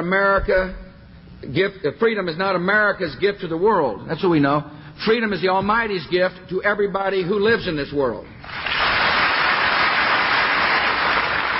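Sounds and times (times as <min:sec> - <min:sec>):
speech: 0:00.0 - 0:00.8, 0:01.4 - 0:08.8
crowd applauding: 0:08.4 - 0:11.5.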